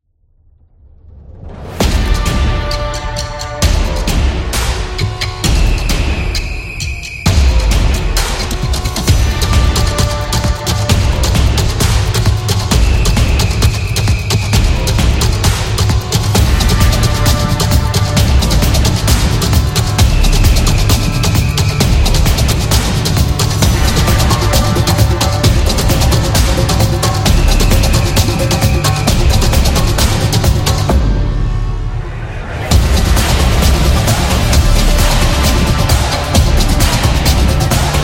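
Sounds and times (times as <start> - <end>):
sport drums for a sports vlog: 1.7 - 31.8, 32.6 - 38.0.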